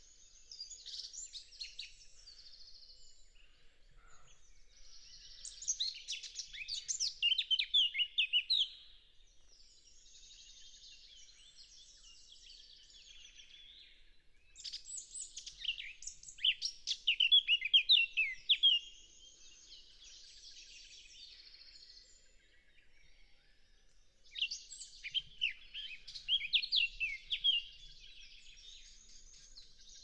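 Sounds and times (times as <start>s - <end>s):
Eurasian blackcap singing: 5.1s - 8.8s, 14.6s - 19.4s, 24.2s - 30.0s.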